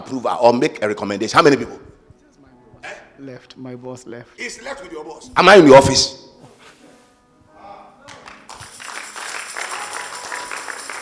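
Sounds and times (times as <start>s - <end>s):
speech: 0.1s - 1.9s, 3.2s - 6.3s
audience applause: 8.1s - 11.0s.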